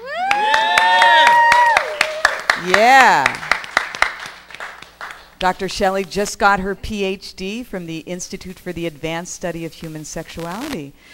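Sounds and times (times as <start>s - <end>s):
audience cheering at the Bonoboville speakeasy: 0.0s - 3.4s
audience clapping at the Bonoboville speakeasy: 0.2s - 5.6s
speech: 5.4s - 11.1s.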